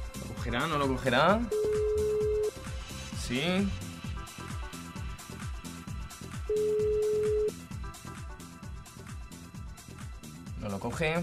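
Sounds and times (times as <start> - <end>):
rhythmic, repeating background: 0.0 - 11.2
speech: 0.4 - 1.6, 3.3 - 3.8, 10.7 - 11.2
telephone ringing tone on an outgoing call: 1.5 - 2.5, 6.5 - 7.6.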